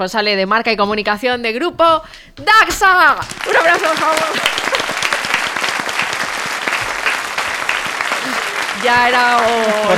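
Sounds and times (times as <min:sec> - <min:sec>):
speech: 0:00.0 - 0:04.6, 0:08.8 - 0:09.9
audience applause: 0:03.3 - 0:09.9.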